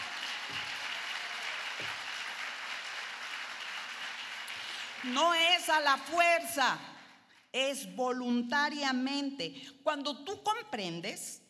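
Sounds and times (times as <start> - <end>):
audience applause: 0.0 - 5.2
speech: 5.0 - 6.9, 7.5 - 11.4.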